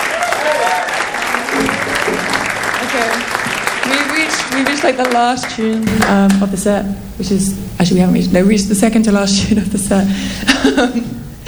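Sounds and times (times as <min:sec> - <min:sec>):
audience cheers and whoops: 0:00.0 - 0:01.8
audience applause: 0:00.0 - 0:05.9
speech: 0:04.3 - 0:11.2
laughter: 0:09.8 - 0:11.4.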